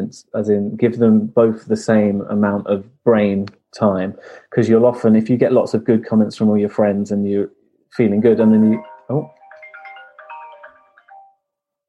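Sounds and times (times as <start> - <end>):
speech: 0.1 - 9.4
phone ringtone playing through a laptop: 8.5 - 11.5.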